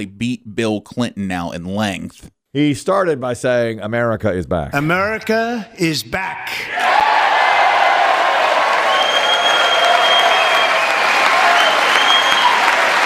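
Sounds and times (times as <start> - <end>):
speech: 0.0 - 7.1
applause in Congress chamber: 6.8 - 13.0.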